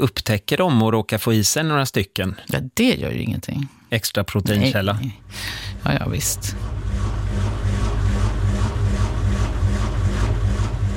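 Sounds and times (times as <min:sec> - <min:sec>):
speech: 0:00.0 - 0:06.8
malfunctioning washing machine rumbling: 0:04.5 - 0:10.9.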